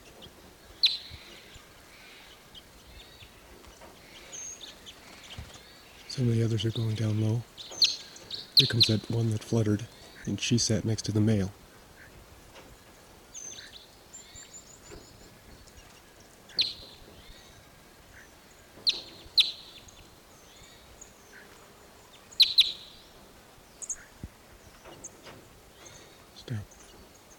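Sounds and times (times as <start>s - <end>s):
birds calling in an Apache pine: 0.0s - 27.3s
speech: 6.2s - 7.7s, 8.6s - 11.6s.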